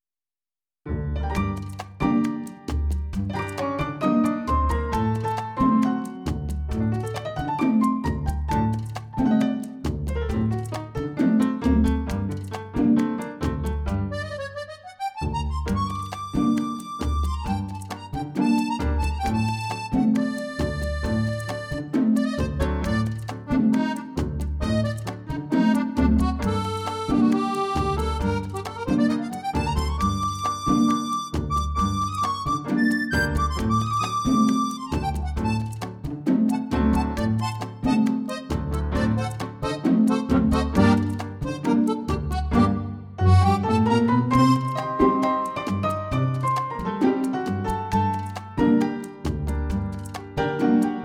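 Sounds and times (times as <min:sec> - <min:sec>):
tango music: 0:00.9 - 0:51.0.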